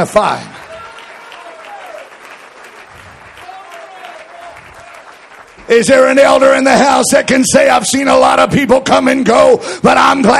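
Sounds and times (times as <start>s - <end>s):
speech: 0.0s - 0.6s, 5.7s - 10.3s
audience clapping hands: 0.0s - 7.0s.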